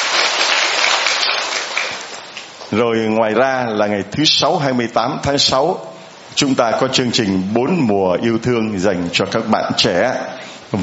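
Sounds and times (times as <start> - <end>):
Catholic congregation clapping for the catechumens: 0.0 - 2.8
speech: 2.7 - 10.8.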